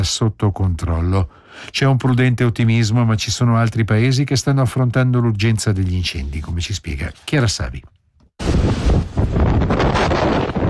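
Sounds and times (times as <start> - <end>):
speech: 0.0 - 10.5
strong gusting wind on the island of Crete: 8.4 - 10.6.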